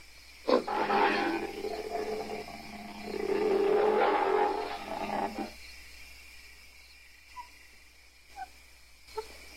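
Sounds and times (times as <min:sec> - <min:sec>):
ape letting out a low rough growl: 0:00.5 - 0:05.6.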